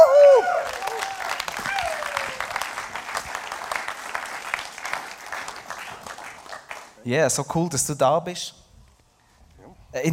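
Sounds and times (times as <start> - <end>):
audience applause: 0.0 - 7.0
speech: 7.1 - 8.6, 10.0 - 10.1.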